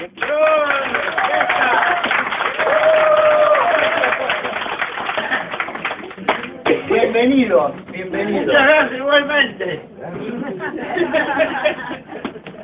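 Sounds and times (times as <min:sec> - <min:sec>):
audience applause: 0:00.0 - 0:06.6
laughter: 0:03.8 - 0:05.8, 0:10.1 - 0:12.6
speech: 0:07.4 - 0:12.0.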